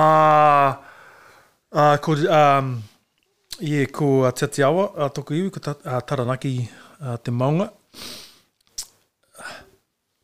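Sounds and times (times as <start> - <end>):
speech: 0.0 - 0.8, 1.7 - 2.9, 3.6 - 8.2
sniff into the microphone: 7.9 - 8.5.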